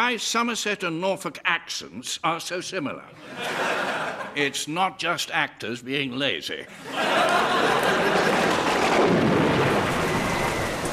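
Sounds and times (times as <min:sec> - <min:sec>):
speech: 0:00.0 - 0:07.1
laughter: 0:03.1 - 0:04.6, 0:06.6 - 0:09.0
thunder: 0:08.0 - 0:10.9
heavy rain storm: 0:08.2 - 0:10.9.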